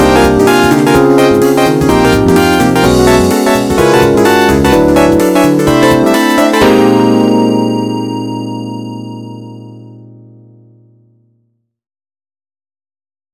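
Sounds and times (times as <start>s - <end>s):
overworld electronic jazz remix: 0.0s - 9.9s.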